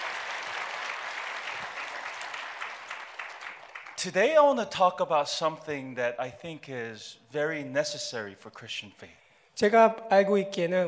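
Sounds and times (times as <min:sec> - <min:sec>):
audience applause: 0:00.0 - 0:04.0
speech: 0:04.0 - 0:10.8.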